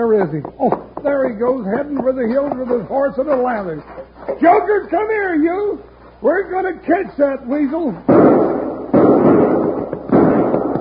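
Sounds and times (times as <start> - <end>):
speech: 0.0 - 8.5
gunshots: 8.1 - 10.8.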